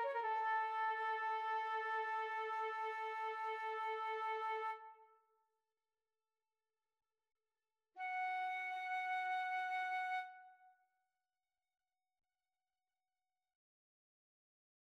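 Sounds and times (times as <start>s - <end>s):
flute: 0.0s - 5.2s, 8.0s - 10.9s.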